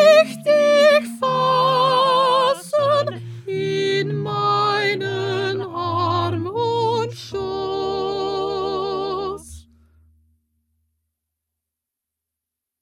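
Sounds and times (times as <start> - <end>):
soprano singing: 0.0 - 9.7.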